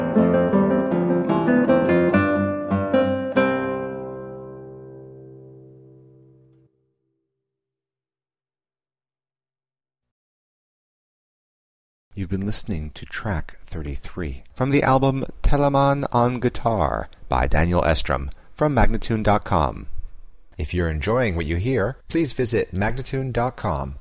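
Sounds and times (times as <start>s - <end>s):
andante guitar: 0.0s - 6.8s
person speaking: 12.1s - 20.0s, 20.6s - 24.0s.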